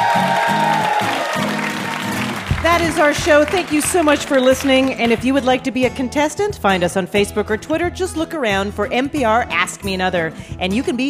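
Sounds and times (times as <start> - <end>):
audience applause: 0.0 - 5.0
speech: 2.8 - 11.0.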